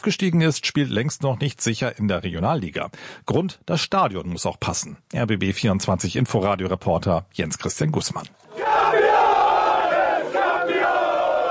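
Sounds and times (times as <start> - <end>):
speech: 0.0 - 9.0
football fans cheering a championship: 8.5 - 11.4.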